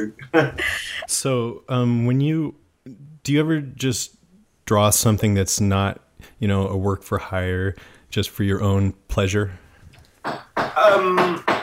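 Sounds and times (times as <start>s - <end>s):
speech: 0.0s - 9.6s, 10.2s - 11.5s
builders knocking: 10.2s - 11.6s.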